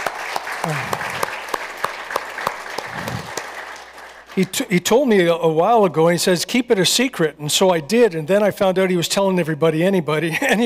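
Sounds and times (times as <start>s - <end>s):
audience applause: 0.0s - 4.6s
speech: 0.6s - 1.0s, 4.4s - 10.6s.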